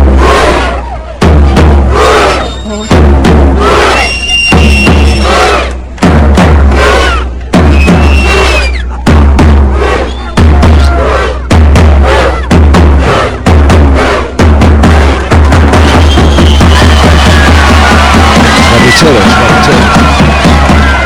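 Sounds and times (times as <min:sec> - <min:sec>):
crowd's rhythmic football war cry: 0:00.1 - 0:02.6, 0:03.4 - 0:21.0
crowd clapping: 0:15.4 - 0:21.0.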